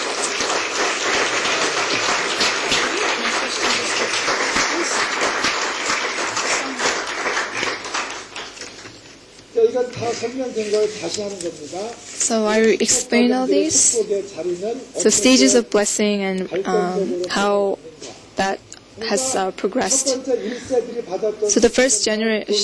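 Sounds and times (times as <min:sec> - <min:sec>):
round of applause: 0:00.0 - 0:09.0
speech: 0:09.9 - 0:22.6.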